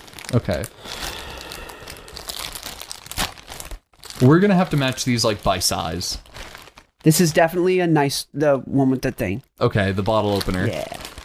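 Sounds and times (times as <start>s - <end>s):
bag crinkling as it is opened: 0.0s - 7.0s, 10.2s - 11.2s
speech: 0.3s - 1.0s, 4.2s - 6.3s, 7.0s - 11.0s.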